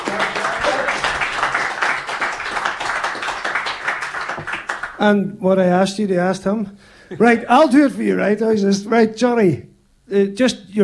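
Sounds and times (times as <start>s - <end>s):
audience applause: 0.0s - 5.0s
speech: 5.0s - 10.8s.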